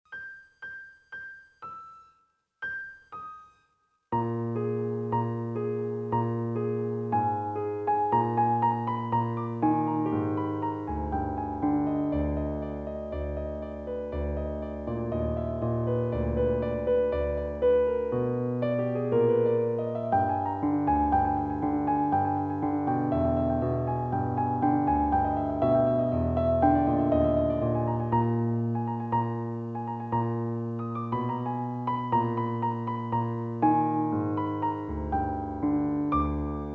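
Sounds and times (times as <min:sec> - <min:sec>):
piano: 0:00.0 - 0:36.7.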